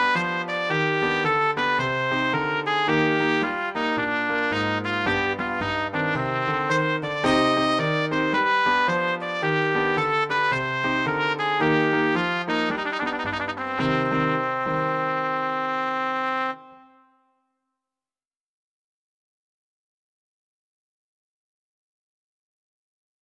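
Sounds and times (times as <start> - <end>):
trumpet: 0.0 - 17.4.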